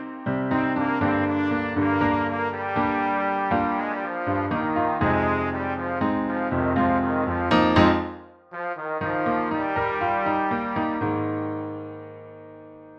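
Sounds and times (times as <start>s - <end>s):
piano melody: 0.0s - 12.9s.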